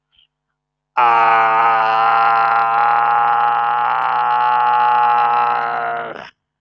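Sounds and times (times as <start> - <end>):
human voice wailing and moaning: 1.0 - 6.3.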